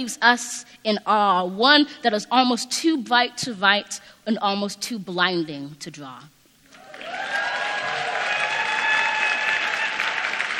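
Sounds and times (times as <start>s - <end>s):
speech: 0.0s - 6.4s
whoops and hollers: 6.8s - 10.2s
audience applause at a poetry reading: 6.8s - 10.5s.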